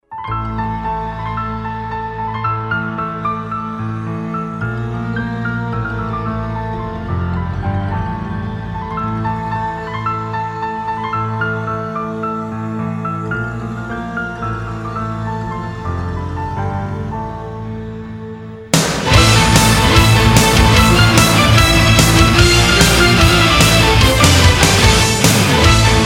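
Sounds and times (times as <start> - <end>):
instrumental music: 0.0 - 26.0.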